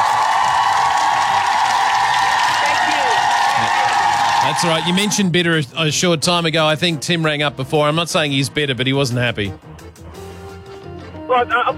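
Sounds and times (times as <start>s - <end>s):
dense crowd cheering and clapping: 0.0s - 5.4s
speech: 4.5s - 9.7s, 11.4s - 11.7s.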